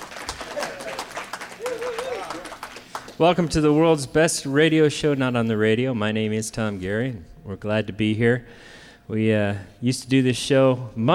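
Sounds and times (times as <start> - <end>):
audience clapping: 0.0 - 3.5
person cheering: 1.6 - 2.6
speech: 3.2 - 11.1.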